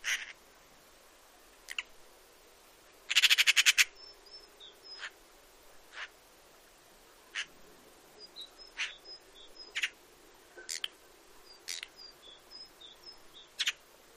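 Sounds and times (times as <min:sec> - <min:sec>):
Eurasian magpie harsh calls and rattling chatter: 0:00.0 - 0:00.4, 0:03.1 - 0:03.9, 0:07.3 - 0:07.5, 0:08.7 - 0:09.0, 0:09.7 - 0:10.0, 0:11.6 - 0:12.0, 0:13.6 - 0:13.8.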